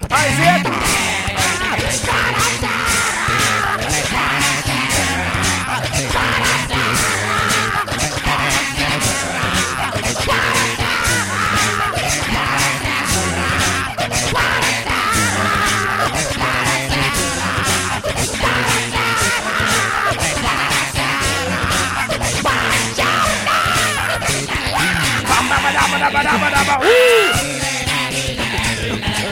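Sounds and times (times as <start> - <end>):
a cappella rock cover made entirely with the voice: 0.0 - 29.2
laughter: 0.2 - 6.1, 9.1 - 14.0, 15.0 - 17.9, 19.2 - 27.6
beatboxed drum hits: 25.2 - 27.2.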